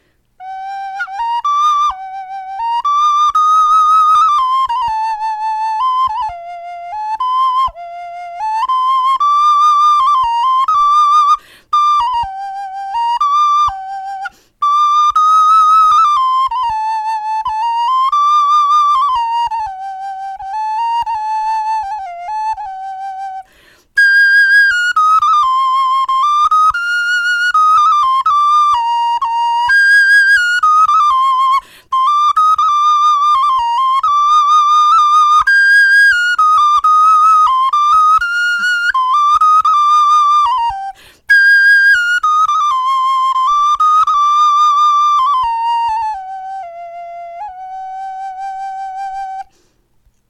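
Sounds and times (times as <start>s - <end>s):
bone flute melody: 0.0s - 49.7s.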